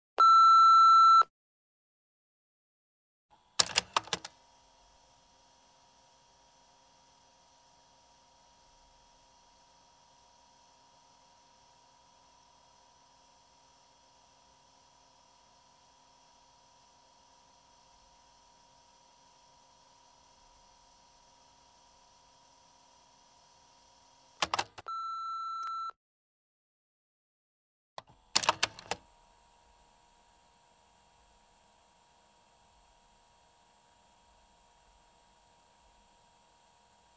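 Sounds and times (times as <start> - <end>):
telephone: 0.2 - 1.3, 3.6 - 4.3, 24.4 - 25.9, 28.4 - 29.0.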